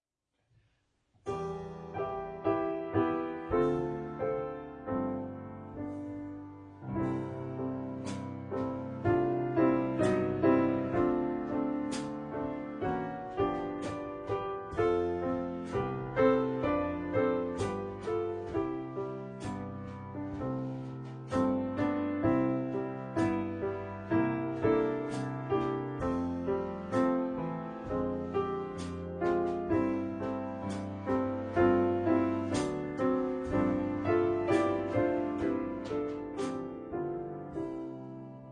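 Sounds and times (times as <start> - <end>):
piano: 1.2 - 38.5
drums: 7.0 - 22.4, 24.2 - 36.7.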